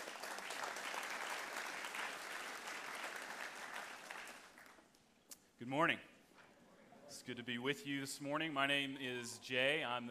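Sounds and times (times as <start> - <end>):
audience applause: 0.0 - 4.8
speech: 5.6 - 6.1, 7.2 - 10.0.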